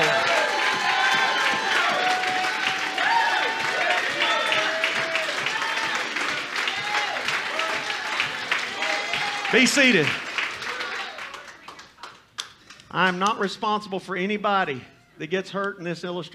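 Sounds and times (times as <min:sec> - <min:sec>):
people shouting and whooping: 0:00.0 - 0:11.3
audience clapping: 0:00.0 - 0:13.5
speech: 0:09.5 - 0:10.2, 0:12.9 - 0:16.3.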